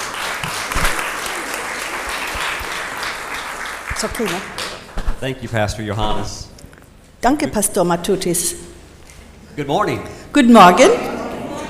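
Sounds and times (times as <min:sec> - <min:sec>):
church congregation applause welcoming speakers: 0:00.0 - 0:05.0
speech: 0:04.0 - 0:04.6, 0:05.2 - 0:06.5, 0:07.2 - 0:08.7, 0:09.6 - 0:11.1.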